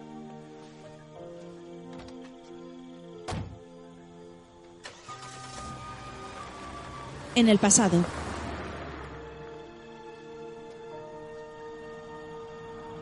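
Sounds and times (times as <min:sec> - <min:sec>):
car starting and driving away: 0:04.7 - 0:13.0
speech: 0:07.4 - 0:08.2.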